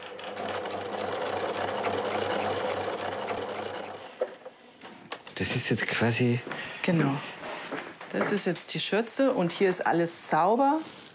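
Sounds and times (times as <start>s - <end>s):
sewing machine stitching an apron onto a waistband for a Wiesn outfit: 0.0s - 4.1s
speech: 5.4s - 7.3s, 8.2s - 11.0s.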